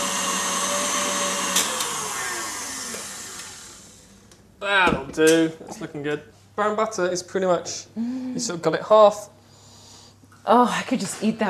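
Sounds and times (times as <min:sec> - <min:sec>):
electric mixer whipping cookie dough: 0:00.0 - 0:04.2
speech: 0:04.6 - 0:09.4, 0:10.4 - 0:11.4.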